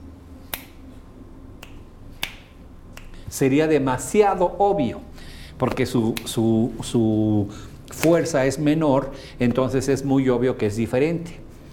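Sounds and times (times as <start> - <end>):
low hum: 0.0 - 11.7
finger snaps: 0.4 - 0.9, 1.6 - 3.3, 6.0 - 6.4
speech: 3.3 - 11.4.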